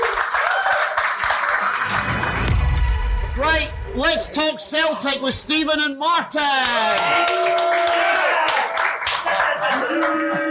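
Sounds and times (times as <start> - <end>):
crowd applauding: 0.0 - 2.8, 6.6 - 10.4
crowd cheering: 0.0 - 4.5, 6.5 - 10.4
speech: 3.5 - 8.1.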